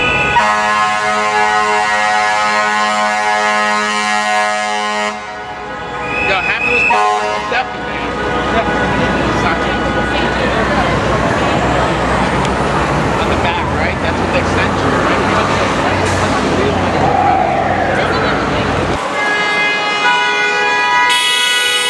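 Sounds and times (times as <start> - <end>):
fire truck siren in New York: 0.0 - 13.0, 14.2 - 21.8.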